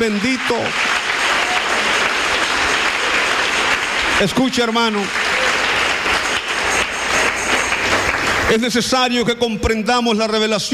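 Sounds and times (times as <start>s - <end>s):
speech: 0.0s - 0.9s, 4.2s - 5.2s, 8.5s - 10.7s
audience applause: 0.0s - 8.6s.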